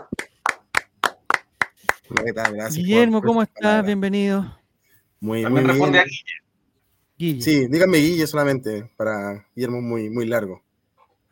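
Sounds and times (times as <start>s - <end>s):
recorded applause: 0.0s - 2.7s
speech: 2.2s - 4.6s, 5.2s - 6.4s, 7.2s - 10.6s.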